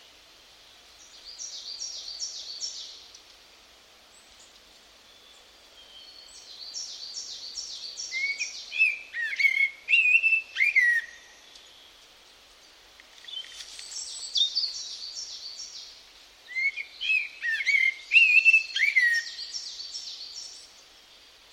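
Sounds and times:
bird calls: 4.3 - 20.8.

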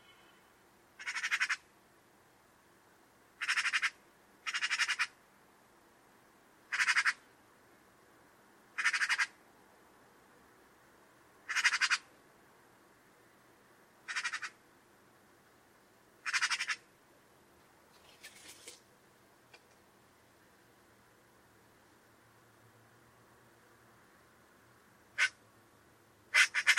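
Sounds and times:
buzzy harsh bird call: 0.0 - 1.6, 3.4 - 5.1, 6.7 - 7.2, 8.8 - 9.3, 11.5 - 12.1, 14.1 - 14.6, 16.2 - 16.8, 26.3 - 26.7.

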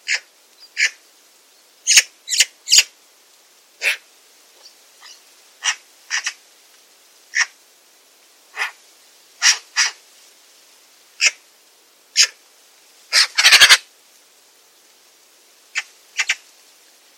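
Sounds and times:
bird giving sharp high calls: 1.9 - 2.9, 3.8 - 4.0, 5.0 - 6.4, 8.6 - 8.8, 9.4 - 10.0, 13.1 - 13.8, 15.8 - 16.4.

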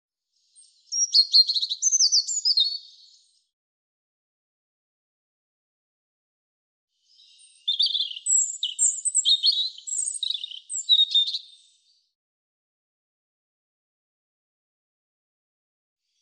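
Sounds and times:
European robin singing high phrases of slurred whistles and trills: 0.4 - 3.4, 7.0 - 12.1.

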